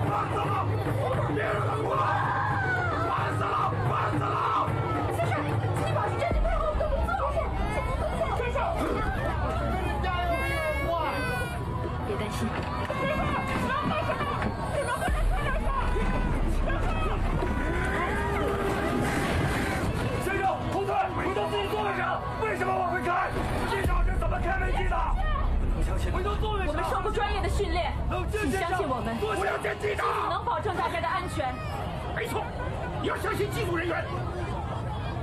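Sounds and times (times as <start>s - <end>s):
laughter: 0.0s - 25.6s, 26.2s - 35.2s
agitated airplane passengers shouting: 0.0s - 35.2s
people screaming: 0.0s - 35.2s
speech: 0.1s - 2.2s, 27.6s - 34.6s.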